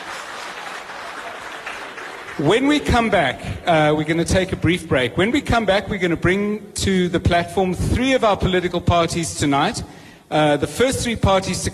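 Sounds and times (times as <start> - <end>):
audience applause: 0.0 - 3.1
speech: 2.4 - 11.7.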